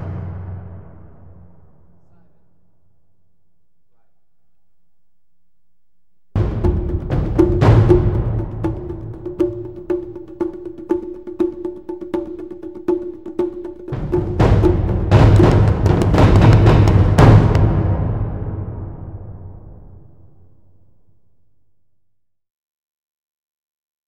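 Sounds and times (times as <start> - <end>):
percussion: 0.0 - 2.5, 6.4 - 20.5.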